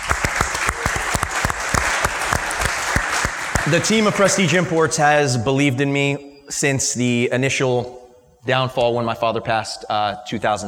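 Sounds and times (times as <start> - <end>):
round of applause: 0.0 - 5.0
speech: 3.7 - 10.6.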